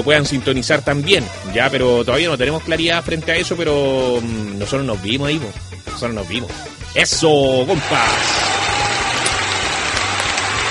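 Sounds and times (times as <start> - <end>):
speech: 0.0 - 8.6
crowd applauding: 7.6 - 10.7.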